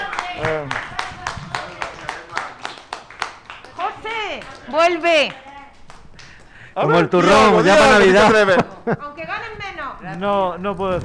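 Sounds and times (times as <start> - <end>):
audience applause: 0.0 - 8.4
speech: 0.4 - 0.8, 4.7 - 5.4, 6.8 - 11.0
laughter: 6.8 - 9.6.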